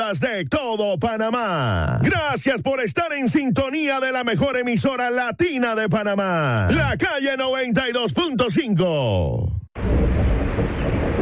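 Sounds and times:
speech: 0.0s - 10.3s
rain falling: 9.8s - 11.2s.

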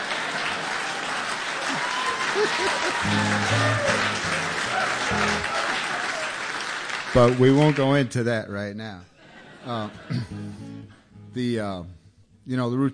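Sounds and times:
audience applause: 0.0s - 8.1s
laughter: 1.6s - 6.4s, 9.2s - 11.1s
speech: 2.4s - 3.8s, 7.1s - 12.9s.

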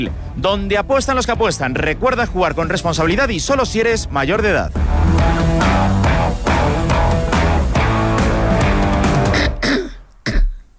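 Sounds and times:
speech: 0.0s - 5.8s
music: 0.0s - 9.8s
person clearing throat and coughing: 9.3s - 10.7s.

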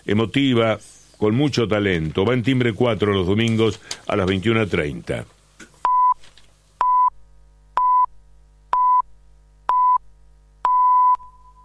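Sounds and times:
speech: 0.0s - 5.4s
radio hourly time signal beeps: 6.8s - 7.1s, 7.8s - 8.1s, 8.8s - 9.0s, 9.7s - 10.0s, 10.7s - 11.6s.

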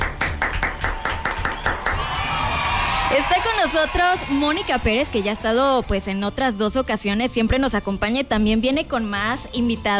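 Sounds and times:
audience clapping in a steady rhythm: 0.0s - 5.6s
speech: 3.1s - 9.9s.

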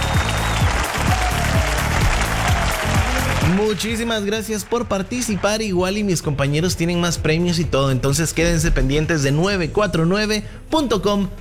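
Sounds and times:
applause: 0.0s - 5.9s
speech: 3.5s - 11.3s.

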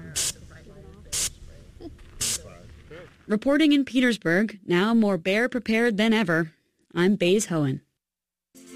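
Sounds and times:
bear spray canister discharging: 0.2s - 0.4s, 1.1s - 1.4s, 2.2s - 2.4s
speech: 3.3s - 7.8s.

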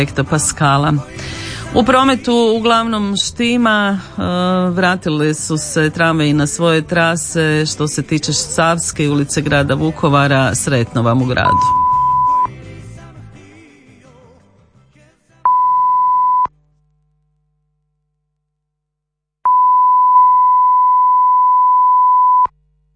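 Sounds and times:
speech: 0.0s - 11.8s
music: 0.0s - 16.4s
radio hourly time signal beeps: 11.4s - 12.5s, 15.5s - 16.5s, 19.5s - 22.5s.

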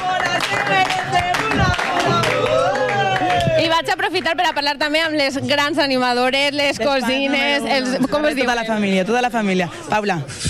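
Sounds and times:
cheering and overlapping voices: 0.0s - 4.0s
crowd applauding: 0.0s - 4.8s
speech: 3.8s - 10.4s.

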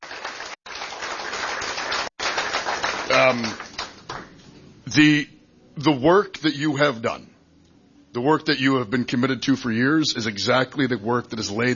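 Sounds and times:
audience applause: 0.0s - 4.3s
speech: 3.1s - 3.6s, 4.9s - 7.3s, 8.2s - 11.7s.

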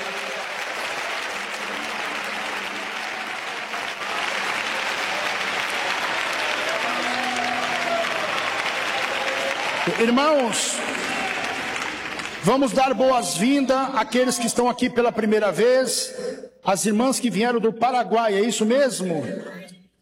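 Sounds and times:
audience clapping hands: 0.0s - 14.5s
speech: 9.9s - 11.1s, 12.4s - 19.7s.

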